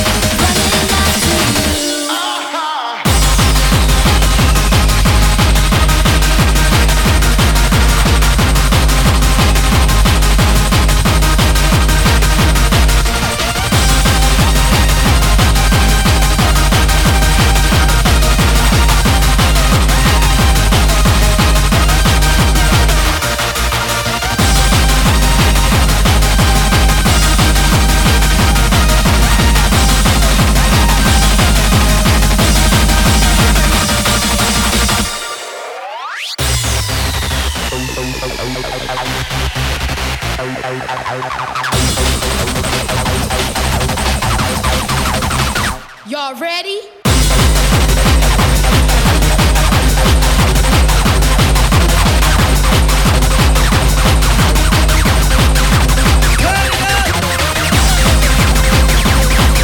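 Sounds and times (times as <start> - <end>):
hardcore music mix: 0.0 - 59.6.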